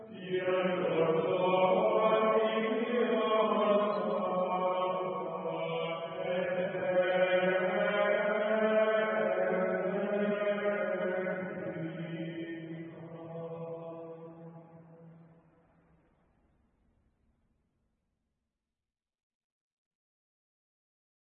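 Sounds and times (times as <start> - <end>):
Gregorian chant: 0.0 - 15.3.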